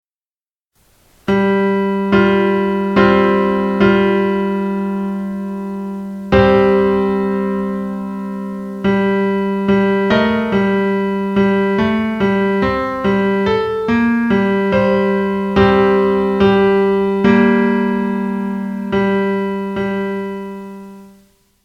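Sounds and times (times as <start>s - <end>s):
music: 1.2s - 21.6s.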